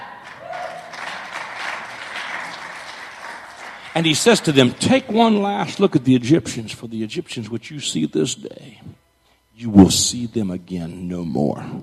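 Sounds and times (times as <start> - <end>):
audience clapping: 0.0 - 5.6
speech: 4.0 - 11.8.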